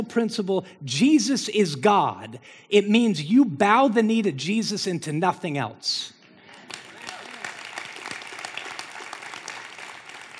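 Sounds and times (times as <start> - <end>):
speech: 0.0 - 6.2
audience applause: 6.5 - 10.3.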